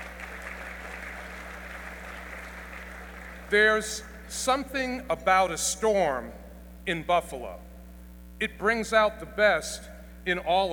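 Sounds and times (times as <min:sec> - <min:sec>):
audience applause: 0:00.0 - 0:03.8
speech: 0:03.5 - 0:07.7, 0:08.4 - 0:10.7.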